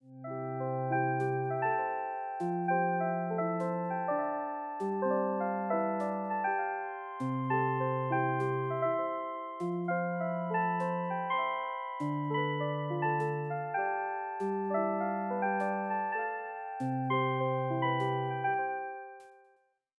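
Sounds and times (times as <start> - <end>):
background music: 0.1 - 19.3.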